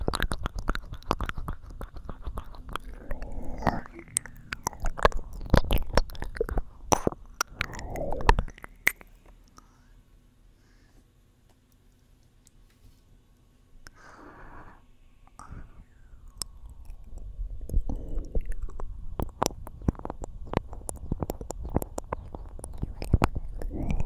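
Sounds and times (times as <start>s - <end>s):
gentle soothing ear licking: 0.0s - 9.6s, 16.2s - 24.0s.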